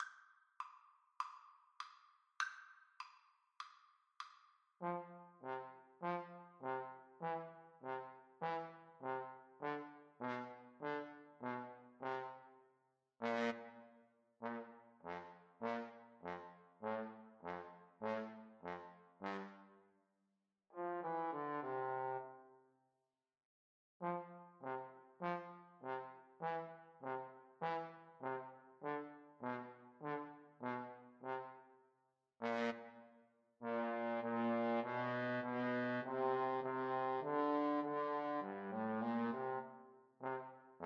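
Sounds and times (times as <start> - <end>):
trombone duet: 4.8 - 12.4, 13.2 - 13.7, 14.4 - 19.6, 20.8 - 22.3, 24.0 - 31.6, 32.4 - 32.9, 33.6 - 40.8.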